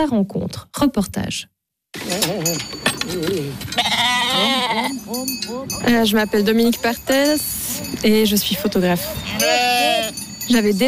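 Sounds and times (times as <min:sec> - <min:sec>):
speech: 0:00.0 - 0:10.8
sheep bleating in a pasture: 0:03.6 - 0:05.0, 0:09.1 - 0:10.2.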